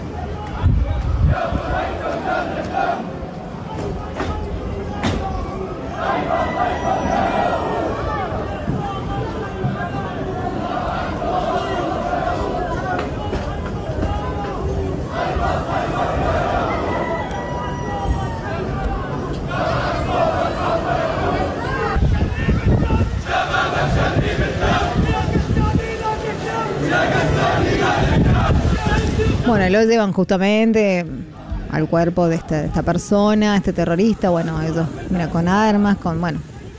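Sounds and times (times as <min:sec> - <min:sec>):
large crowd chanting at the funeral of a terrorist leader: 0:00.0 - 0:29.5, 0:31.2 - 0:36.7
speech: 0:29.7 - 0:36.5.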